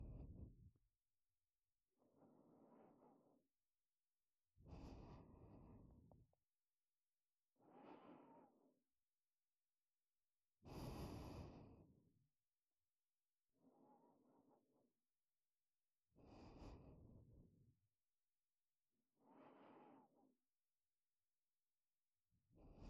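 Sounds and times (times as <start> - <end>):
breathing in ASMR on the right side: 4.6 - 6.3, 7.6 - 8.6, 10.6 - 12.0, 16.2 - 17.5, 19.2 - 20.3, 22.6 - 22.8.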